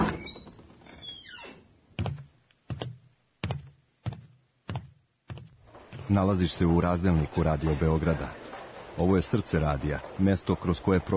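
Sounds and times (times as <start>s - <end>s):
creaking door swinging open: 0.0s - 1.7s
speech: 6.1s - 8.4s, 9.0s - 11.1s.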